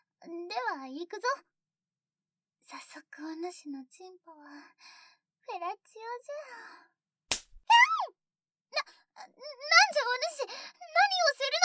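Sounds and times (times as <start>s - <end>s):
speech: 0.5s - 1.6s, 2.7s - 7.0s, 8.7s - 11.6s
hand slapping someone's buttocks: 7.3s - 7.6s.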